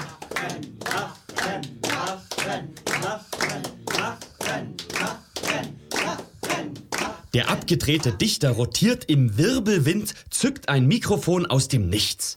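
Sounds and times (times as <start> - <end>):
audience applause: 0.0 - 7.2
speech: 0.4 - 0.7, 7.7 - 12.3.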